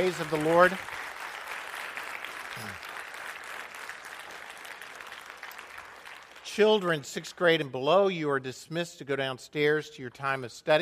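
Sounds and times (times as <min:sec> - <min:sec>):
speech: 0:00.0 - 0:01.0, 0:02.6 - 0:02.9, 0:06.6 - 0:10.8
audience clapping: 0:00.0 - 0:07.0.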